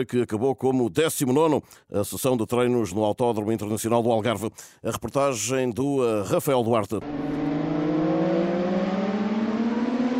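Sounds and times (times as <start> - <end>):
speech: 0.0 - 7.8
racing motorcycles at Autódromo Internacional do Algarve: 7.0 - 10.1.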